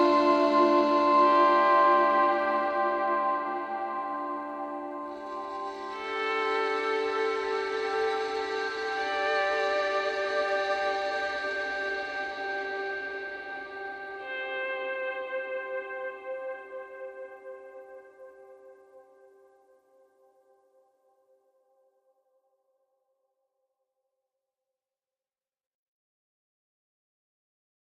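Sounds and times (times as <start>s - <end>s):
ambient music: 0.0s - 18.8s.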